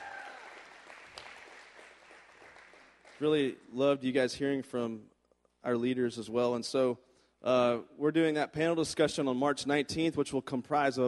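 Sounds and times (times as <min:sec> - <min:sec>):
audience clapping: 0:00.0 - 0:03.6
speech: 0:03.2 - 0:11.0.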